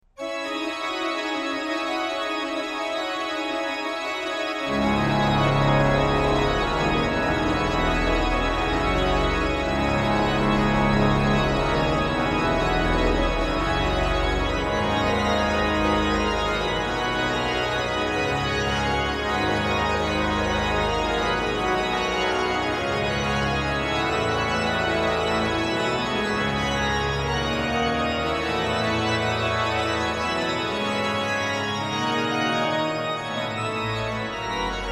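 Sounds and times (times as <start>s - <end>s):
organ toccata: 0.2s - 34.9s.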